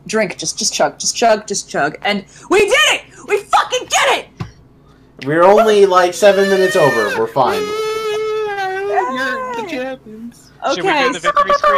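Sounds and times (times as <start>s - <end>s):
speech: 0.1s - 3.0s, 5.2s - 7.9s, 10.6s - 11.7s
person's victory screech, howling yell: 5.6s - 9.8s, 10.9s - 11.7s.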